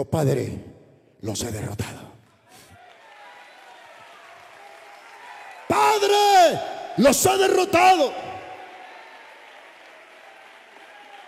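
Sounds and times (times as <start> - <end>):
speech: 0.0 - 2.0, 6.0 - 8.3
audience applause: 2.5 - 11.2.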